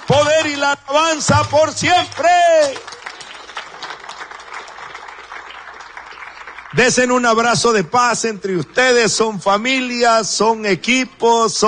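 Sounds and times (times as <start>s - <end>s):
audience applauding: 0.0s - 0.6s, 1.8s - 7.5s
speech: 0.6s - 2.9s, 6.7s - 11.6s.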